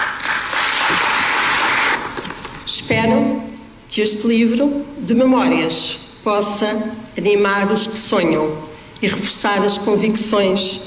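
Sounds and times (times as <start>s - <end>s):
audience applause at a book launch: 0.0s - 2.4s
speech: 2.7s - 10.8s.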